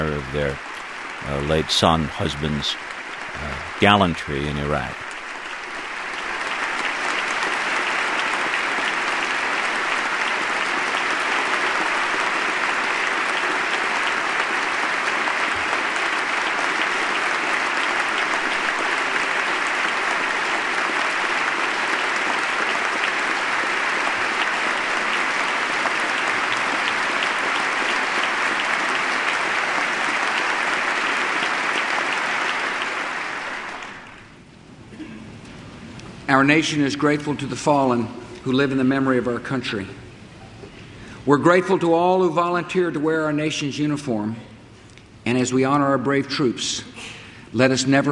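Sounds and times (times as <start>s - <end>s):
speech: 0.0s - 5.1s, 36.4s - 40.1s, 41.3s - 44.5s, 45.3s - 48.1s
audience applause in congressional chamber: 0.0s - 34.4s.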